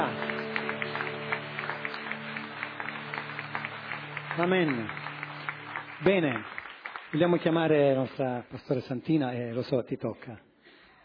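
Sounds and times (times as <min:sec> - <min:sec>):
audience applauding: 0:00.0 - 0:08.2
speech: 0:04.4 - 0:05.0, 0:06.0 - 0:06.5, 0:07.1 - 0:10.5.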